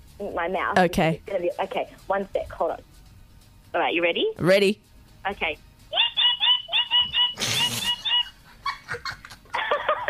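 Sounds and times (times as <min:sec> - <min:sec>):
speech: 0:00.2 - 0:02.9, 0:03.7 - 0:06.0
laughter: 0:05.9 - 0:10.0
person imitating a bird call: 0:06.0 - 0:08.3.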